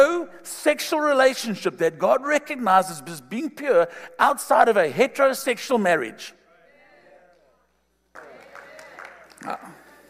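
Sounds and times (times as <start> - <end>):
speech: 0.2 - 6.4, 9.4 - 9.8
audience clapping: 8.1 - 10.0.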